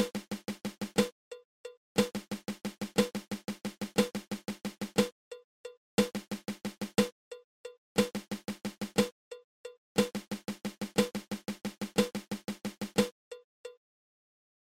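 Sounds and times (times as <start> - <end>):
flam paradiddle-diddle drum rudiment: 0.0 - 1.1, 2.0 - 5.1, 6.0 - 7.2, 8.0 - 9.2, 10.0 - 13.2.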